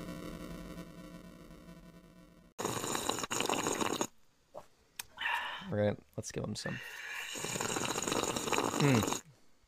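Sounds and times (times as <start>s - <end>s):
slurping hot coffee: 2.6s - 4.2s, 7.1s - 9.2s
speech: 5.8s - 7.6s, 8.8s - 9.3s.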